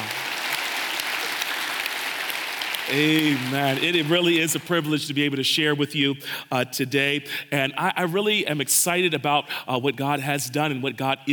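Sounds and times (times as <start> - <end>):
congregation applauding: 0.0 - 5.2
speech: 2.9 - 11.3.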